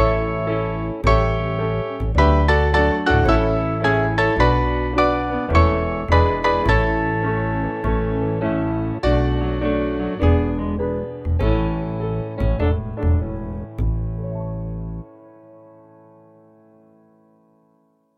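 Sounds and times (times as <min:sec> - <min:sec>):
American melody on piano: 0:00.0 - 0:18.1.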